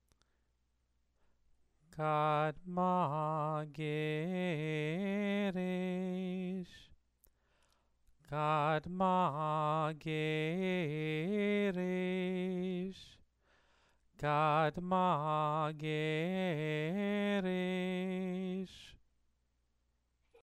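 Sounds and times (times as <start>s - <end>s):
person chanting scripture: 2.0s - 6.9s, 8.3s - 13.2s, 14.2s - 19.0s.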